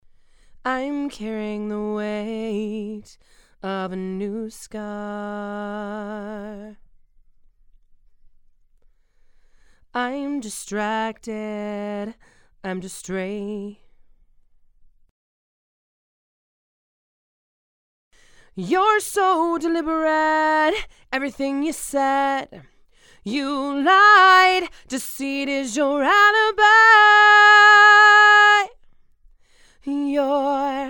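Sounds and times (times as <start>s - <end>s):
female vocals: 0.6s - 6.8s, 10.0s - 13.9s, 18.5s - 28.8s, 29.8s - 30.8s.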